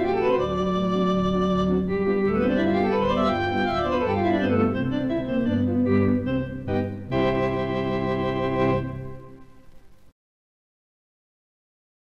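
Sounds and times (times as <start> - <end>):
polka played on Hammond organ: 0.0 - 9.4.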